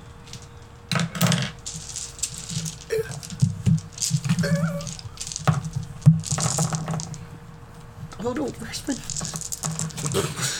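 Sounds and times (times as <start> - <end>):
dice spilling and clattering: 0.3 - 7.2, 8.8 - 10.2.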